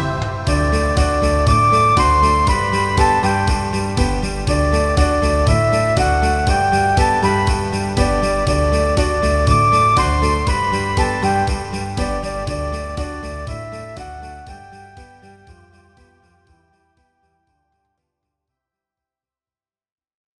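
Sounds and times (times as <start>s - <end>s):
circus Christmas song backing track: 0.0s - 16.3s.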